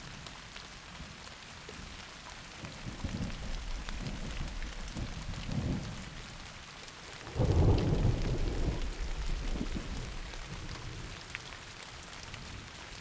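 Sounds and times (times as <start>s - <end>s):
thunderstorm: 2.8s - 11.4s.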